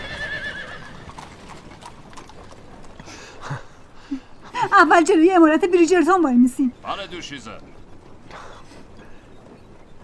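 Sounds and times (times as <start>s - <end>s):
horse whinny: 0.0s - 1.5s
horse hooves clip-clopping as a horse-drawn carriage starts off: 0.0s - 4.0s, 4.7s - 10.0s
speech: 4.8s - 7.7s.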